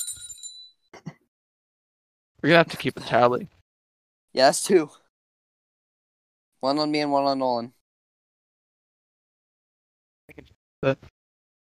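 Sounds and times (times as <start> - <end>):
bell ringing: 0.0 - 0.8
speech: 2.4 - 3.6, 4.4 - 5.0, 6.6 - 7.8, 10.4 - 11.1.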